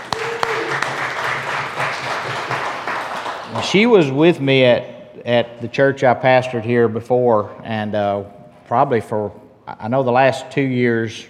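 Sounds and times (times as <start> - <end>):
church congregation applauding to welcome a new member: 0.0 - 4.1
speech: 3.6 - 11.2.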